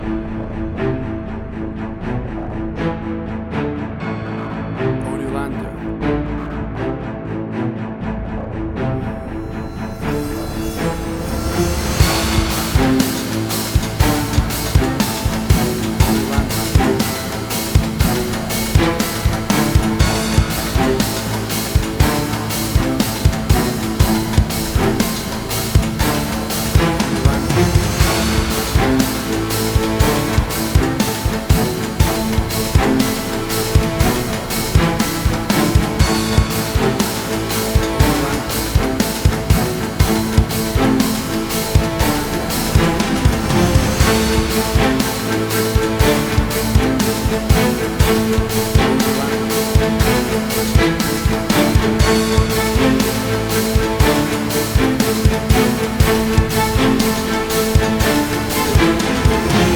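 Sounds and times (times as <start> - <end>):
big epic music: 0.0 - 59.7.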